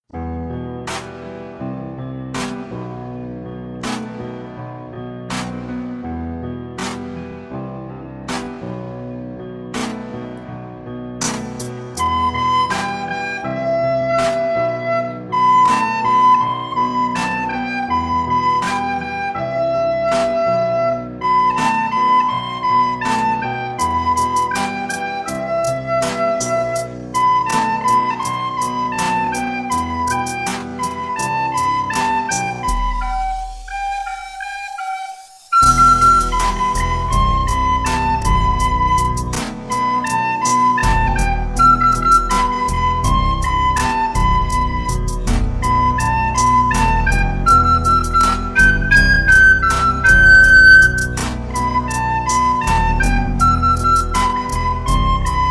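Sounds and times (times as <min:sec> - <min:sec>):
background track: 0:00.2 - 0:55.4
recorder: 0:11.2 - 0:55.4.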